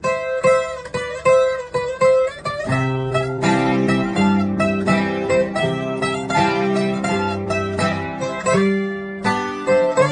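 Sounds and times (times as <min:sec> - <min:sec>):
guitar playing: 0:00.0 - 0:10.1.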